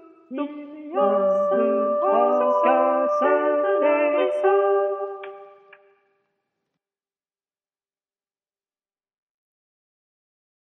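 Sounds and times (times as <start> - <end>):
full ensemble playing: 1.0 - 5.4.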